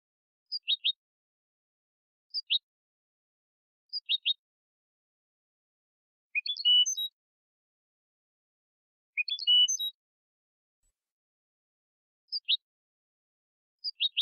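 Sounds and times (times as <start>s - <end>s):
European goldfinch song: 0.5s - 1.0s, 2.3s - 2.7s, 3.9s - 4.4s, 6.3s - 7.2s, 9.2s - 10.0s, 12.2s - 12.7s, 13.8s - 14.1s.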